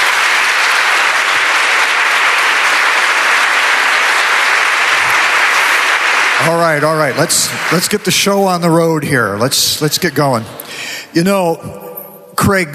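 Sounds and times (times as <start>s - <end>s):
audience applause welcoming a bishop: 0.0s - 8.7s
speech: 6.5s - 11.8s, 12.4s - 12.7s.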